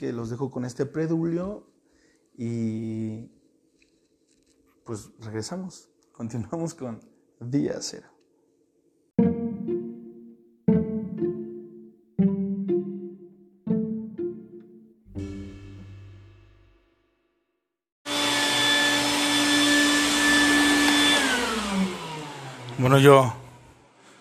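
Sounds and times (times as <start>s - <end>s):
speech: 0.0s - 1.8s, 2.4s - 3.4s, 4.9s - 8.1s, 23.0s - 23.4s
decaying tones: 9.2s - 17.2s
vacuum cleaner running: 18.1s - 23.9s.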